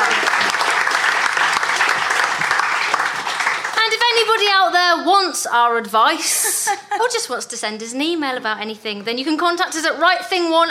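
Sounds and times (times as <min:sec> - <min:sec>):
round of applause: 0:00.0 - 0:04.5
speech: 0:04.6 - 0:10.6
laughter: 0:06.2 - 0:07.2.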